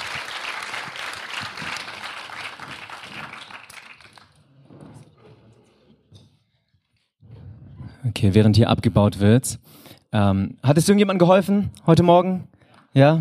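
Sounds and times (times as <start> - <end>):
audience applause: 0.0 - 4.5
speech: 8.2 - 13.1.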